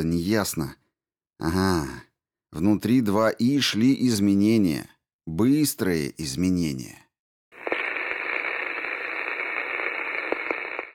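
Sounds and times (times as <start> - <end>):
speech: 0.0 - 0.8, 1.4 - 7.0
radio static hiss: 7.6 - 10.9.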